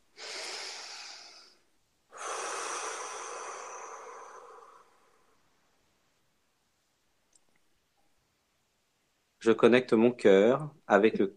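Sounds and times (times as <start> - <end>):
deep breath inhale and exhale: 0.0 - 5.6
speech: 9.4 - 11.3.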